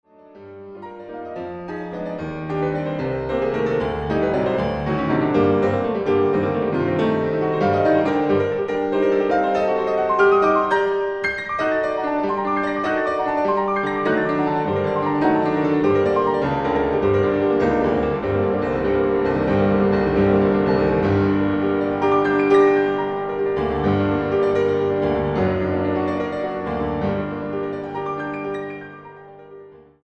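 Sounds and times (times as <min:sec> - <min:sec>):
solo piano: 0:00.1 - 0:30.0.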